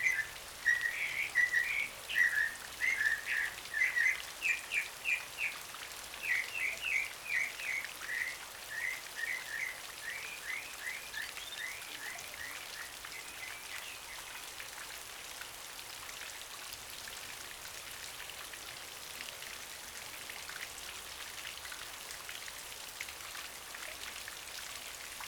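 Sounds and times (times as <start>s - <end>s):
songbirds: 0.0s - 14.6s
rain shower in a deep forest: 0.0s - 25.2s.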